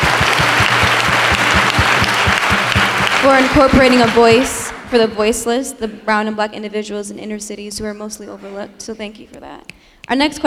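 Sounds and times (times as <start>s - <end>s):
audience applause at a question-and-answer event in Colorado: 0.0s - 4.9s
speech: 3.2s - 10.4s.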